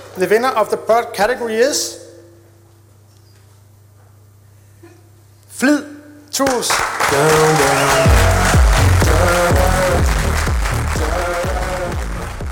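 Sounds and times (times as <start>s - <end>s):
speech: 0.2s - 2.0s, 5.6s - 8.4s
applause at award announcement: 6.4s - 12.5s
music at award announcement: 7.2s - 12.5s.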